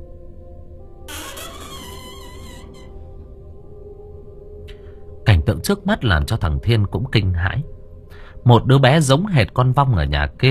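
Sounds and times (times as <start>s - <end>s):
door creaking open: 1.1s - 3.8s
speech: 5.5s - 7.8s, 8.4s - 10.4s.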